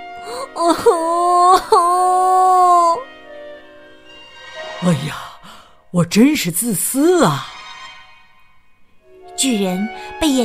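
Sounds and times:
boy crying in wailing sobs: 0.2s - 3.1s
speech: 0.3s - 1.7s, 5.9s - 7.5s, 9.4s - 10.4s.

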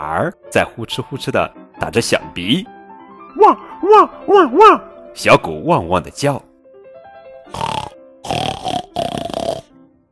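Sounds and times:
speech: 0.0s - 6.5s
faint soft melody: 0.0s - 8.2s
person imitating pig grunting: 7.5s - 9.7s.

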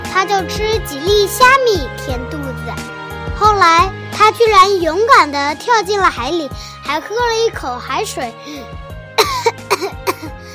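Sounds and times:
speech: 0.2s - 9.4s
coughing: 9.2s - 10.5s.

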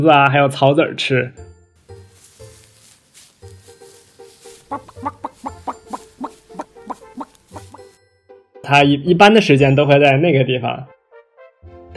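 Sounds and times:
speech: 0.0s - 1.4s, 8.7s - 11.0s
chicken clucking: 4.4s - 7.9s.

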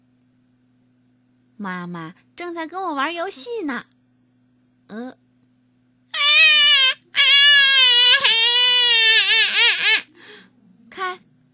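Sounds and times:
speech: 1.6s - 3.9s, 4.9s - 5.2s
infant crying: 6.2s - 10.1s.

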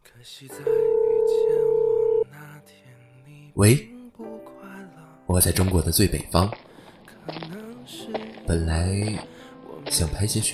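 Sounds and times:
speech: 0.2s - 1.7s, 3.6s - 3.9s, 5.3s - 6.6s, 8.5s - 9.3s, 9.9s - 10.5s
telephone ringing tone: 0.6s - 2.3s.

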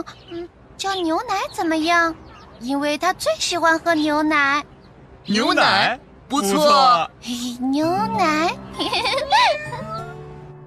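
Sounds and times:
speech: 0.0s - 9.8s
laughter: 8.8s - 10.0s
cat meowing: 9.1s - 10.2s.

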